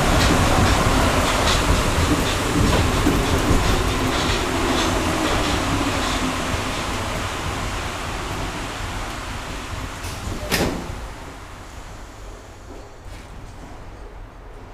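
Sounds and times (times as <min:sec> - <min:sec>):
metro train: 0:00.0 - 0:14.7.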